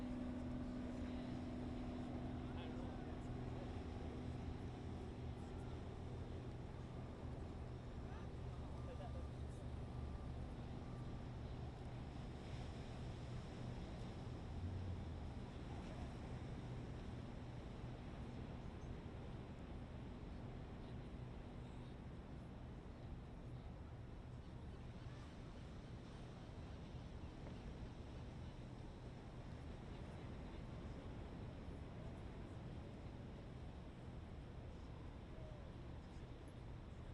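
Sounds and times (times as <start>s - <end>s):
helicopter passing by: 0.0s - 11.4s
medium waves on a beach: 0.0s - 37.1s.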